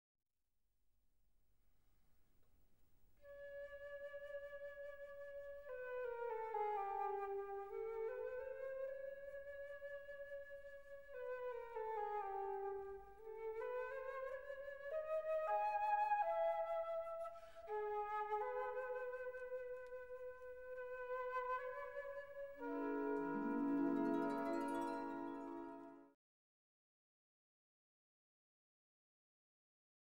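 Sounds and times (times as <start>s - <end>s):
flute piece: 3.2s - 26.2s.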